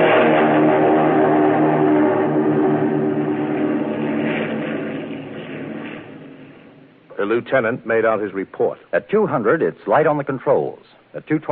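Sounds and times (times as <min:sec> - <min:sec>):
Japanese Zero fighter plane engine drone taking off down a runway: 0:00.0 - 0:07.2
speech: 0:07.3 - 0:11.5.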